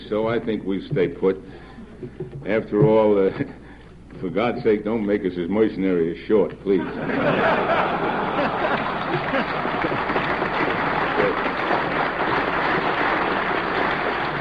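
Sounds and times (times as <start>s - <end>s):
speech: 0.1s - 8.6s
murmur of voices: 6.7s - 14.3s
people laughing: 6.7s - 14.3s
large crowd applauding: 7.1s - 14.3s.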